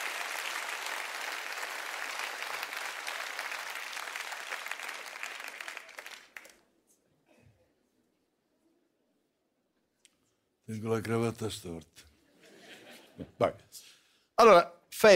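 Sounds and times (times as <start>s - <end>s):
audience applause: 0.0s - 6.6s
speech: 10.7s - 12.1s, 13.2s - 15.1s
laughter: 12.3s - 13.4s.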